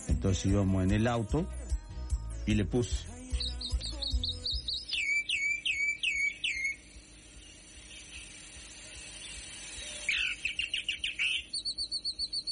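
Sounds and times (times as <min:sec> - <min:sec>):
speech: 0:00.2 - 0:01.6, 0:02.5 - 0:03.1
calandria mockingbird singing: 0:03.1 - 0:12.5.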